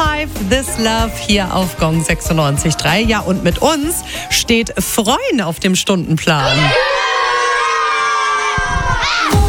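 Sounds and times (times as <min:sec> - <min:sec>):
speech: 0:00.2 - 0:07.1
schoolchildren cheering and shrieking in a classroom: 0:00.6 - 0:04.0, 0:06.4 - 0:09.4.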